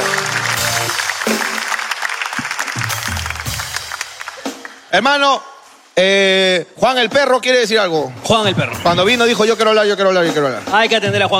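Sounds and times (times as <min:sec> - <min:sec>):
audience applause: 0:00.0 - 0:04.9
speech: 0:04.9 - 0:11.3.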